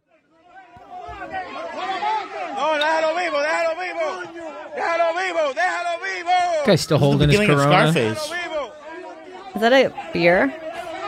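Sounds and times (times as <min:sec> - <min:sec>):
crowd shouting and chattering in a played video: 0:00.0 - 0:11.0
speech: 0:06.6 - 0:08.5, 0:09.6 - 0:10.6.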